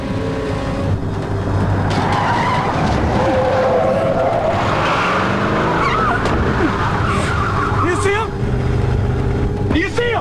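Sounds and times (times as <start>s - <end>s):
pickup truck engine roaring while accelerating hard: 0.0s - 10.2s
pickup truck tire squeals while swerving: 1.4s - 9.0s.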